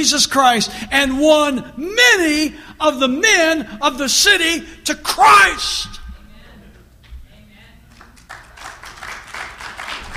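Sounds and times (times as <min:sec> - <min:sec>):
speech: 0:00.0 - 0:06.0
hesitant scattered clapping from audience: 0:07.9 - 0:10.1.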